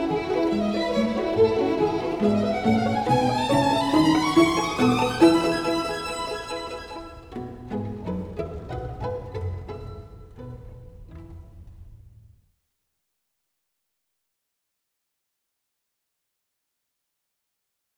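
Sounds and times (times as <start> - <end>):
string ensemble music: 0.0 - 12.2.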